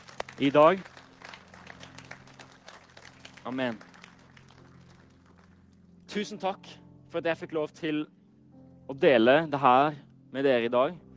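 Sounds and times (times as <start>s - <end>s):
audience clapping: 0.0s - 5.7s
speech: 0.4s - 0.9s, 3.4s - 3.9s, 6.1s - 8.2s, 8.9s - 11.0s.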